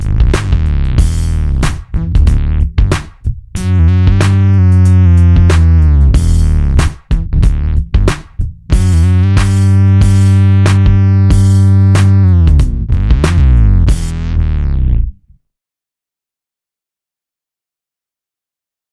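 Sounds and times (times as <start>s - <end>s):
synth bass patch doubled an octave below: 0.0s - 3.0s, 3.6s - 15.3s.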